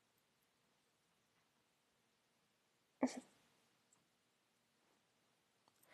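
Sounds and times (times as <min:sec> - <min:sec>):
woman making quiet noises: 0:03.0 - 0:03.3.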